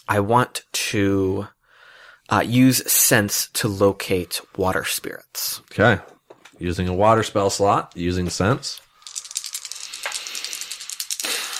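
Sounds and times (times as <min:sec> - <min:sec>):
speech: 0:00.0 - 0:01.6, 0:02.3 - 0:08.9
dice being rolled: 0:08.8 - 0:11.5.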